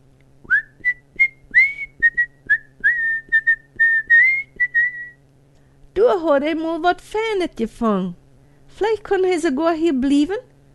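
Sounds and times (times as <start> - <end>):
faint low hum: 0.0 - 10.7
whistled chirps: 0.5 - 5.2
speech: 6.1 - 8.2, 8.8 - 10.5.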